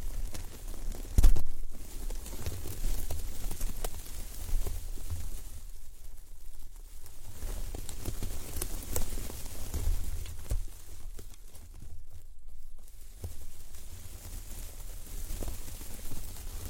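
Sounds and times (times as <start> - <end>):
plants rubbed in circles around the ears: 0.0 - 16.6
sharp crackling taps: 0.1 - 5.3, 7.7 - 13.5.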